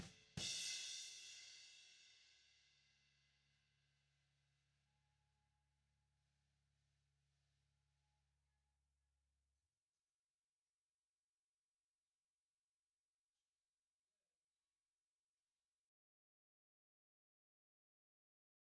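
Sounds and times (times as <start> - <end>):
snare drum: 0.0 - 1.3.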